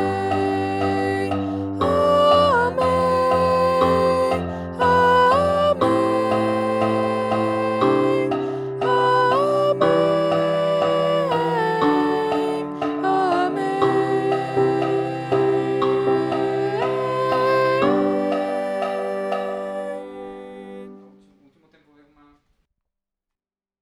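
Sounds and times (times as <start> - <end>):
soprano singing: 0.0 - 21.4.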